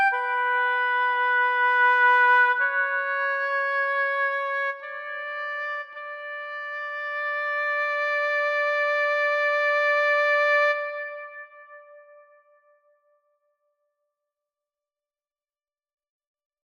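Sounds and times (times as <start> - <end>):
oboe: 0.0 - 12.2.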